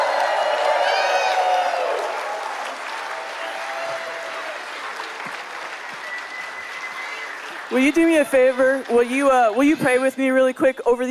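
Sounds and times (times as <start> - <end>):
crowd cheering and whooping: 0.0 - 8.8
crowd applauding: 0.0 - 10.6
speech: 7.7 - 11.0.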